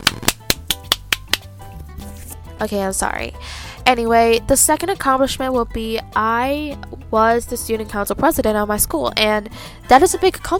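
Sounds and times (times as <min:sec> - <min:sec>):
hands clapping: 0:00.0 - 0:01.5
speech: 0:02.6 - 0:10.5.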